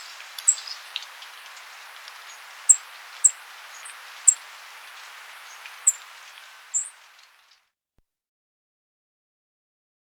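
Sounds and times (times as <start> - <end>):
Northern Rufous-naped Brush-Finch high looped whistles in Ecuador: 0.0 - 7.3.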